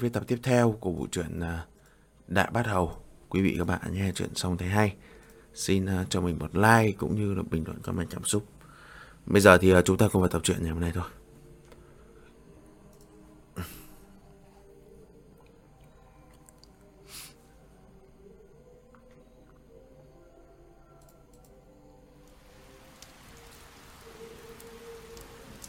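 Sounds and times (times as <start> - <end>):
speech: 0.0 - 1.7, 2.3 - 8.6, 9.2 - 11.2
dripping water ticks: 22.2 - 25.6
heavy rain pouring onto old worn roof tiles: 22.3 - 25.6.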